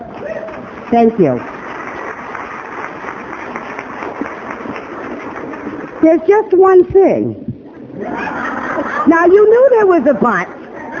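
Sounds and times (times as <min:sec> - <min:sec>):
audience applause: 0:00.0 - 0:06.3
speech: 0:00.9 - 0:01.5, 0:06.0 - 0:07.4, 0:08.0 - 0:10.6
laughter: 0:07.7 - 0:10.9.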